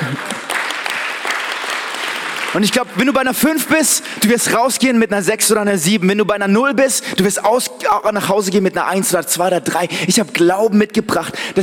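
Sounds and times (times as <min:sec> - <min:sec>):
audience applause: 0:00.0 - 0:03.2
speech: 0:02.5 - 0:11.6.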